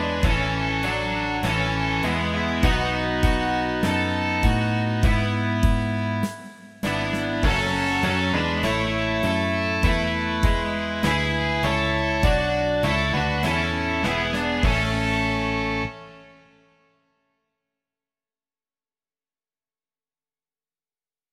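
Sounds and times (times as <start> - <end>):
rock music: 0.0 - 16.3.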